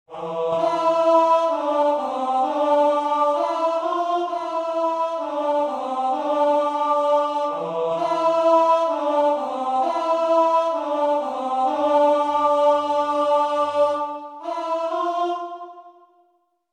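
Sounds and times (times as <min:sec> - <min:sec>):
tenor singing: 0:00.1 - 0:16.0.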